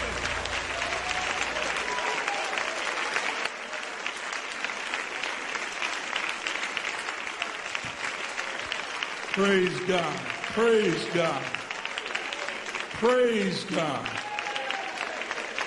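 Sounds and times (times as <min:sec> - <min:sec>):
audience clapping hands: 0:00.0 - 0:15.6
speech: 0:09.4 - 0:11.6, 0:13.0 - 0:14.2.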